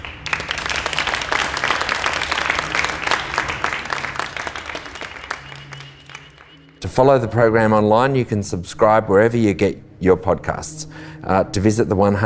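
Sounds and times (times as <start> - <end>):
audience applause: 0.0 - 6.8
speech: 6.8 - 12.2.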